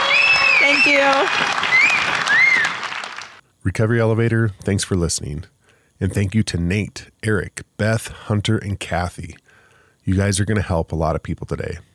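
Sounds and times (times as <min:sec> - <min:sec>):
whistles: 0:00.0 - 0:02.9
crowd clapping: 0:00.0 - 0:03.4
speech: 0:00.8 - 0:01.7, 0:03.6 - 0:09.4, 0:10.1 - 0:11.9.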